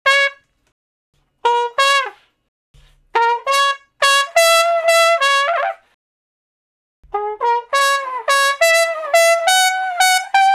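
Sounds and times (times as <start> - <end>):
slow blues trumpet in D flat: 0.0 - 0.5, 1.4 - 2.3, 3.1 - 5.9, 7.1 - 10.5.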